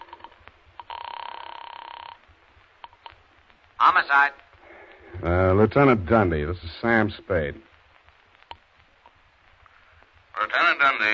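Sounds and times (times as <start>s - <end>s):
telephone ringing: 0.0s - 2.2s
speech: 3.9s - 4.5s, 5.2s - 7.7s.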